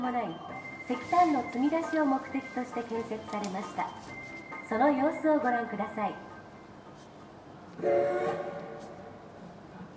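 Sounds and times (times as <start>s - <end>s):
speech: 0.0s - 6.3s, 7.8s - 8.6s
steam locomotive whistle: 7.8s - 9.0s.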